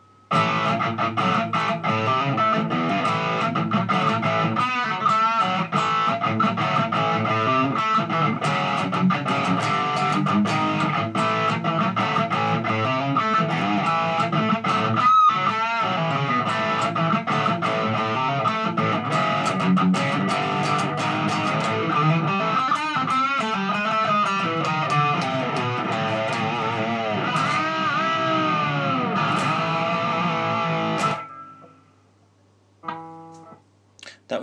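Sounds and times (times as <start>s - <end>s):
Jackson Charvel Model 6 electric guitar: 0.0s - 31.8s, 32.8s - 34.2s.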